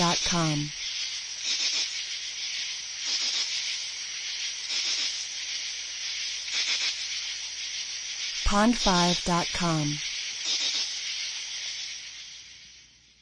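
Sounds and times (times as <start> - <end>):
high-pitched background drone: 0.0 - 0.8, 8.4 - 10.7
cricket chirping: 0.0 - 13.2
speech: 0.2 - 0.8, 8.5 - 10.1.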